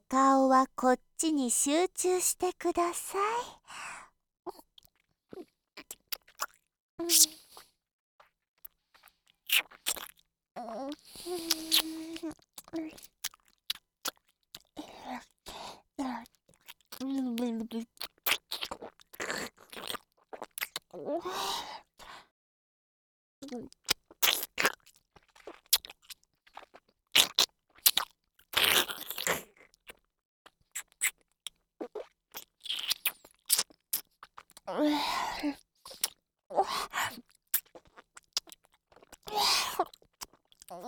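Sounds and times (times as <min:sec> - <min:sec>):
speech: 0:00.1 - 0:03.9, 0:07.0 - 0:07.4, 0:10.6 - 0:13.1, 0:15.1 - 0:16.4, 0:17.0 - 0:18.0, 0:20.9 - 0:21.9, 0:23.4 - 0:23.8, 0:34.7 - 0:35.6
chewing food during a meal: 0:04.7 - 0:06.7, 0:07.6 - 0:10.3, 0:11.0 - 0:15.4, 0:16.2 - 0:20.9, 0:23.5 - 0:34.7, 0:35.6 - 0:36.2, 0:36.8 - 0:40.8.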